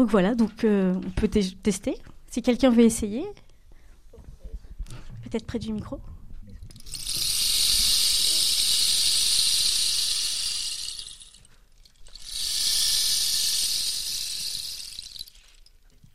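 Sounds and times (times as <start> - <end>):
speech: 0.0 - 3.4, 5.2 - 6.1
rain stick being played: 6.7 - 16.1.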